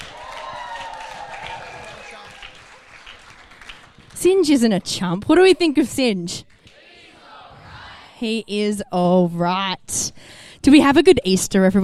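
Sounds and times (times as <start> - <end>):
audience clapping: 0.0 - 5.2
speech: 4.2 - 6.5, 8.2 - 11.8.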